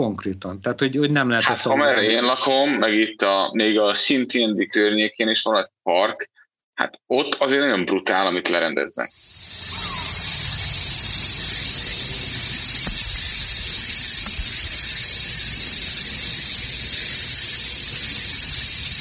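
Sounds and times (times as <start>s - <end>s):
speech: 0.0s - 9.8s
cicadas chirring in waves: 9.1s - 19.0s.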